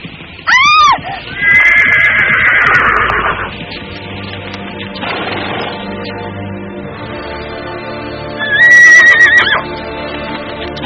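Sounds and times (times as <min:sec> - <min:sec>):
galloping hooves: 0:00.0 - 0:10.8
horse neighing loudly: 0:00.5 - 0:03.5, 0:08.4 - 0:09.6.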